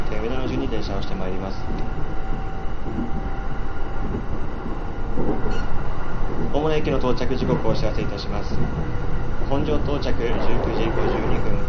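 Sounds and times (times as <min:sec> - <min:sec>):
rapid commuter train running: 0:00.0 - 0:11.6
speech: 0:00.2 - 0:03.2, 0:04.1 - 0:11.6.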